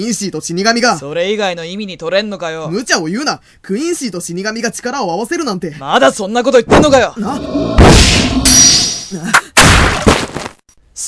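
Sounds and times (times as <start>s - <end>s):
speech: 0.0s - 9.4s
gunshot sound effect: 7.7s - 9.0s, 9.6s - 10.5s.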